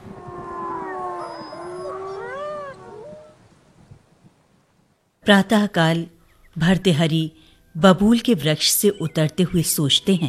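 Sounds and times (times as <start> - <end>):
wolves howling nearby: 0.0 - 3.4
speech: 5.3 - 10.2.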